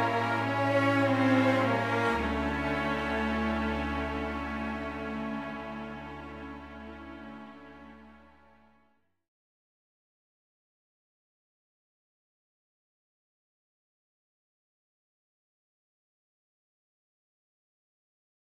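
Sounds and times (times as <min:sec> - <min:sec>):
cellos: 0:00.0 - 0:08.8
violas: 0:00.0 - 0:08.8.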